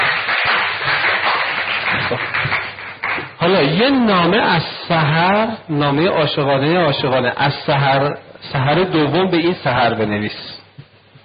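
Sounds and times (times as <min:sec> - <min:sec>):
audience clapping: 0:00.0 - 0:03.8
speech: 0:02.1 - 0:02.3, 0:03.5 - 0:10.6.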